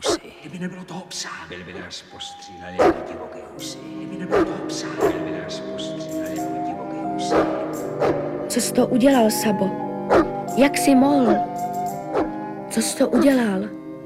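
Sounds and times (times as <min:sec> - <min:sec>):
dog barking: 0:00.0 - 0:00.2, 0:02.8 - 0:03.2, 0:04.3 - 0:05.2, 0:07.2 - 0:08.2
steady tonal background: 0:00.0 - 0:14.0
voices murmuring: 0:00.0 - 0:14.0
speech: 0:00.6 - 0:11.7, 0:12.8 - 0:14.0.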